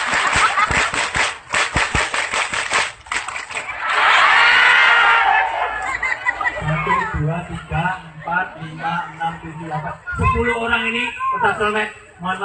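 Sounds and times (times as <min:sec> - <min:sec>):
laughter: 0:00.0 - 0:01.0, 0:03.6 - 0:09.4
crowd performing scout clapping rhythm: 0:00.0 - 0:04.2
speech: 0:07.4 - 0:12.4.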